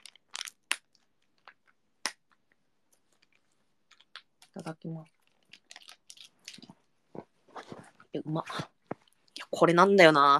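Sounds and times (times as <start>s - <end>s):
vitamin jelly drink pouch crinkling as it is opened: 0.0s - 1.8s, 2.9s - 7.9s
speech: 4.6s - 5.2s, 8.2s - 8.7s, 9.6s - 10.3s.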